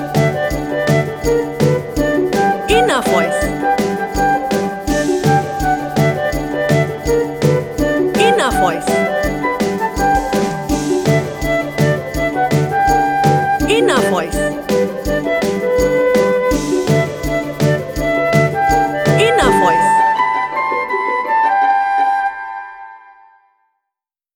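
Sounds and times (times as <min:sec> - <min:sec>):
comical corporate music: 0:00.0 - 0:22.4.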